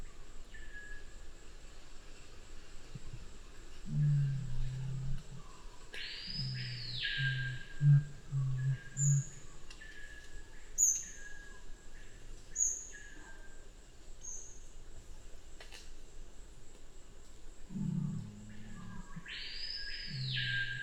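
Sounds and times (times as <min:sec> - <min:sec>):
faint high insects: 0:00.0 - 0:20.8
Black curassow deep booming hum: 0:03.9 - 0:09.6, 0:17.7 - 0:20.8.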